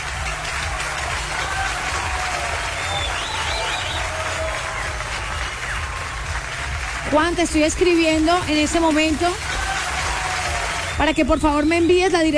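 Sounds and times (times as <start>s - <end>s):
audience applause: 0.0s - 11.9s
speech: 7.1s - 9.5s, 11.0s - 12.3s.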